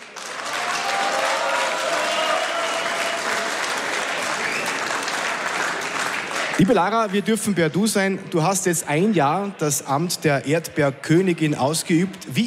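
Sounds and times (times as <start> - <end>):
audience applause: 0.0 - 7.2
speech: 6.6 - 12.4.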